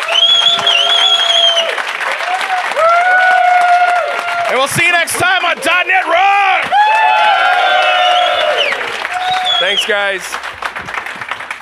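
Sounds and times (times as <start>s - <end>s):
whistle-like tones: 0.0s - 1.7s, 8.0s - 10.0s
audience applause: 0.0s - 11.6s
speech: 4.6s - 6.8s, 9.6s - 10.5s.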